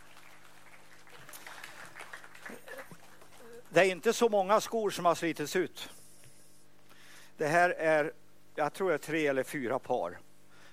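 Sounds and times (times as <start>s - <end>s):
audience applause: 0.0s - 3.8s
speech: 3.7s - 6.0s, 7.4s - 10.2s.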